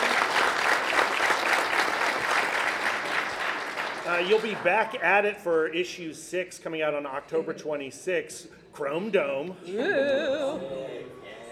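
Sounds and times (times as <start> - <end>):
audience round of applause: 0.0 - 5.6
speech: 4.1 - 11.2.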